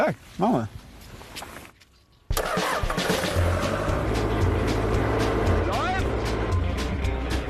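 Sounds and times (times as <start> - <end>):
hazelnut harvesting vehicle engine, combined sweeper and vacuum: 2.3 - 7.4.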